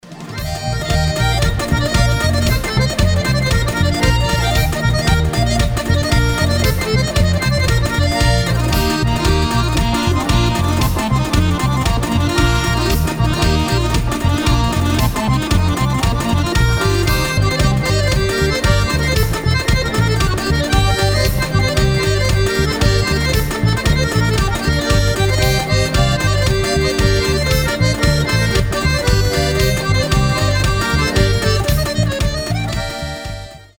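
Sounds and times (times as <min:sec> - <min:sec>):
Dagestani lezginka dance music: 0:00.0 - 0:33.7.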